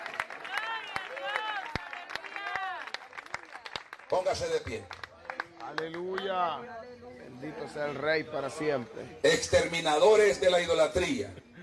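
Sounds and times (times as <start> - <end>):
audience applause: 0.0 - 6.3
speech: 4.1 - 5.0, 5.7 - 11.4.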